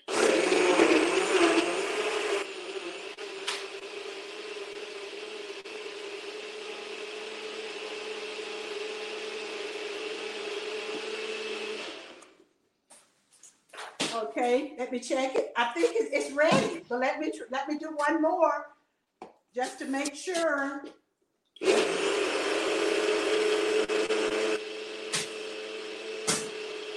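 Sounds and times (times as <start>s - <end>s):
blender running: 0.0s - 12.4s, 21.6s - 26.9s
speech: 14.4s - 18.7s, 19.6s - 21.0s, 21.6s - 22.0s.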